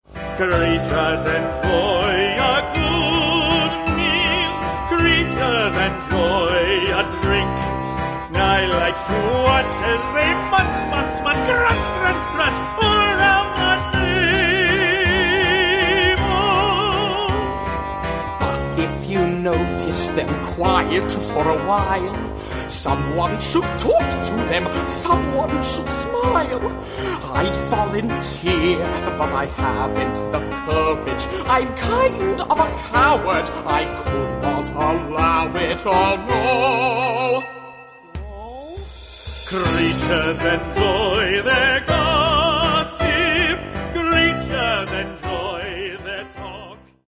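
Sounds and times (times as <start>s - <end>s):
waltz music: 0.0s - 47.0s.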